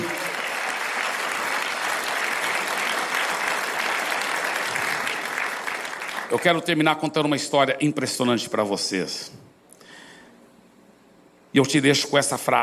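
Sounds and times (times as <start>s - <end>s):
audience round of applause: 0.0s - 6.4s
speech: 6.3s - 9.4s, 11.6s - 12.6s.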